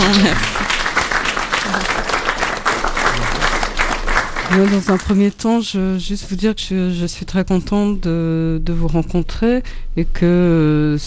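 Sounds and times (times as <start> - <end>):
audience applause: 0.0 - 5.2
speech: 0.2 - 0.6, 4.5 - 11.0.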